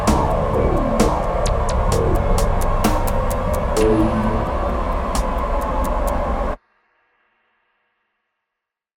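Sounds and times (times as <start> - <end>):
analog background music: 0.0 - 6.6.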